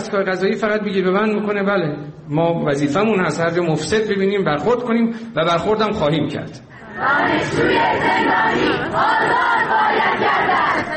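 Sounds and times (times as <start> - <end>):
speech: 0.0 - 10.9
university students chanting protest slogans at a Student Day speech: 6.8 - 10.9.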